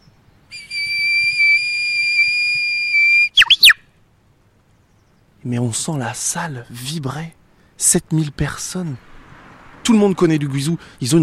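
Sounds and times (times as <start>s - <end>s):
person whistling imitation of a prophet bird: 0.5s - 3.8s
speech: 5.4s - 9.1s, 9.9s - 11.2s.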